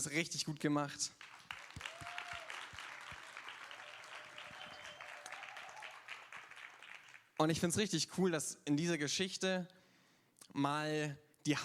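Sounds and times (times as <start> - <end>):
speech: 0.0 - 1.3, 7.4 - 9.8, 10.5 - 11.6
audience applause for a theater team: 1.2 - 7.4
faint whistle: 4.0 - 6.0.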